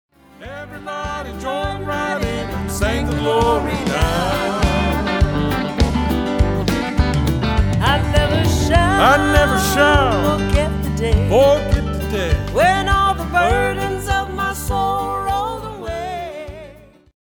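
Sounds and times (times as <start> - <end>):
Southern gospel medley: 0.2 - 17.1.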